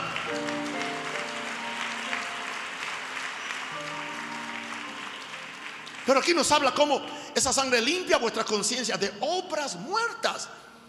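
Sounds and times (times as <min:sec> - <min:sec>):
audience applause: 0:00.0 - 0:07.0
speech: 0:06.1 - 0:10.7.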